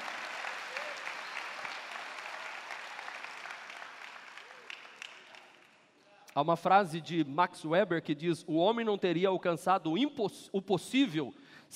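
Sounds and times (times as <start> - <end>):
audience applause: 0.0 - 5.8
speech: 6.4 - 11.7.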